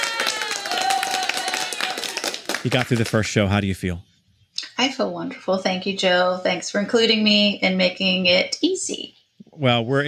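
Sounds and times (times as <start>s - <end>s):
hands clapping: 0.0s - 3.6s
speech: 2.6s - 4.1s, 4.8s - 10.0s.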